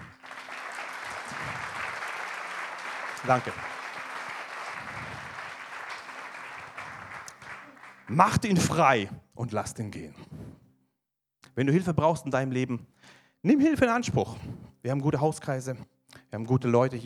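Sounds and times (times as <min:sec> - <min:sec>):
audience applause: 0:00.0 - 0:08.6
speech: 0:03.2 - 0:03.7, 0:08.1 - 0:10.3, 0:11.6 - 0:17.0.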